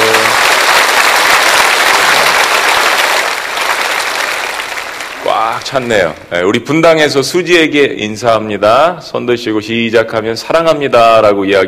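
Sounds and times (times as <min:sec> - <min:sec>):
audience applause: 0:00.0 - 0:06.2
speech: 0:05.7 - 0:11.6.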